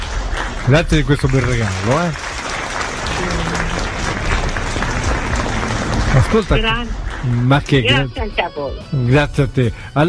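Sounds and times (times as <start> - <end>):
audience applause for a guest: 0.0 - 8.2
speech: 0.7 - 2.3, 6.1 - 10.0.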